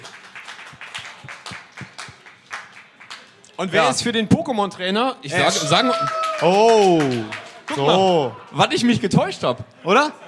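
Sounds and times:
audience applause as a vote: 0:00.0 - 0:03.4, 0:05.6 - 0:08.0
speech: 0:03.6 - 0:10.2.

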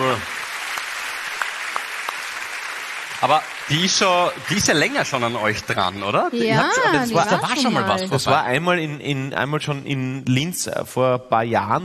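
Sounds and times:
crowd applause for a performer: 0:00.0 - 0:07.9
speech: 0:03.2 - 0:11.8.

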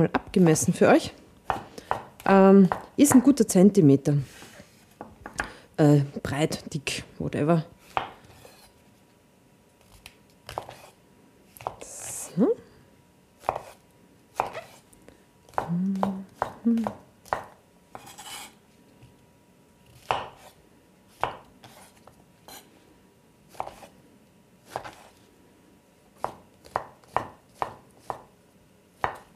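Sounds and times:
speech: 0:00.0 - 0:01.2, 0:02.2 - 0:04.4, 0:05.8 - 0:07.7
faint low hum: 0:00.0 - 0:29.3
knife chopping mushrooms on a cutting board: 0:01.5 - 0:03.3, 0:07.9 - 0:08.7, 0:10.5 - 0:10.9, 0:11.6 - 0:11.8, 0:13.4 - 0:13.8, 0:14.4 - 0:14.8, 0:15.5 - 0:18.6, 0:20.0 - 0:20.6, 0:21.2 - 0:22.6, 0:23.5 - 0:23.9, 0:24.7 - 0:25.1, 0:26.2 - 0:28.3, 0:29.0 - 0:29.3.

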